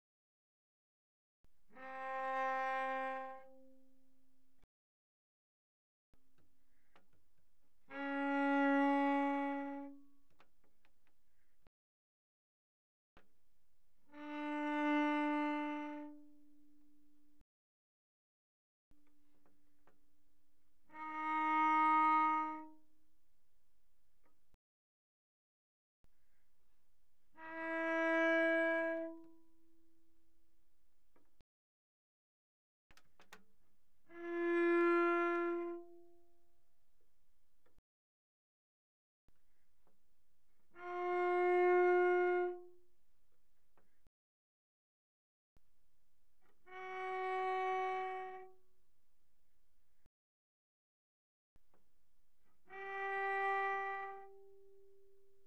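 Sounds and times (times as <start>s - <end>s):
bowed cello playing pianissimo on the D string: 1.5s - 4.6s, 6.2s - 11.7s, 13.2s - 17.4s, 18.9s - 24.6s, 26.1s - 31.4s, 33.2s - 37.8s, 39.5s - 43.9s, 46.4s - 49.5s, 51.7s - 55.4s.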